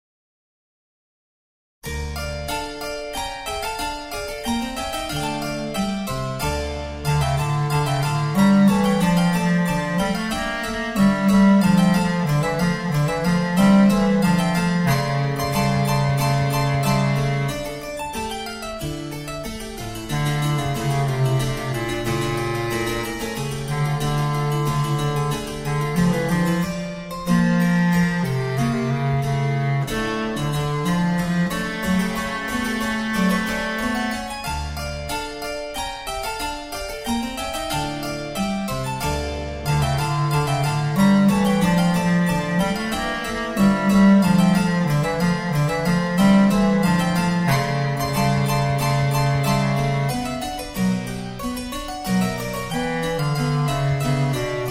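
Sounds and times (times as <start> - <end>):
instrumental music: 1.8 - 54.6.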